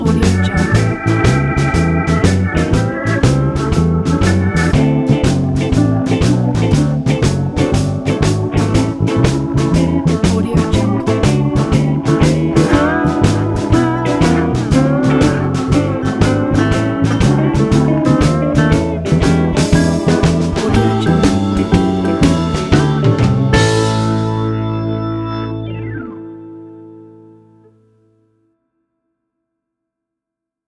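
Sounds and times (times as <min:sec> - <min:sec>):
vintage blues slide guitar: 0:00.0 - 0:27.0.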